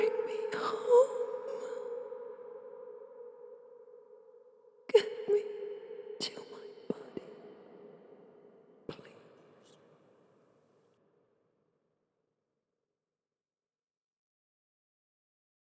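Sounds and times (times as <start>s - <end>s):
ghostly female horror voice: 0.0s - 4.1s, 4.9s - 9.8s.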